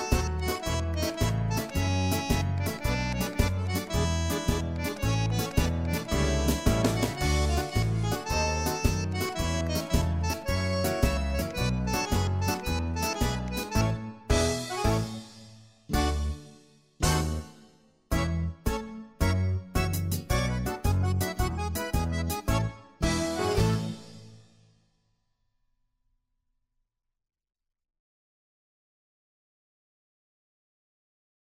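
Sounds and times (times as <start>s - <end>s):
instrumental music: 0.0s - 24.8s.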